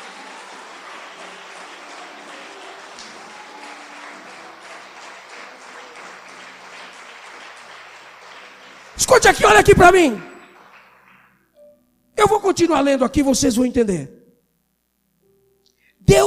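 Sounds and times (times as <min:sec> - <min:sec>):
audience applauding in a large room: 0:00.0 - 0:11.6
speech: 0:09.0 - 0:10.3, 0:12.6 - 0:14.2.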